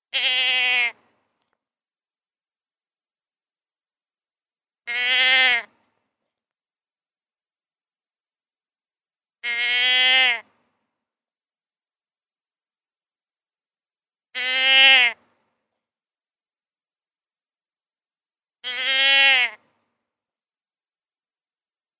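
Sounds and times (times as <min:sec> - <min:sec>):
deer bleating: 0:00.1 - 0:01.1, 0:04.9 - 0:05.7, 0:09.4 - 0:10.5, 0:14.4 - 0:15.2, 0:18.6 - 0:19.7.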